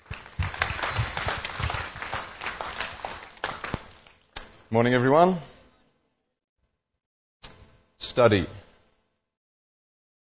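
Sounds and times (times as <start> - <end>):
audience applause: 0.0 - 4.2
speech: 4.7 - 5.5, 8.2 - 8.6.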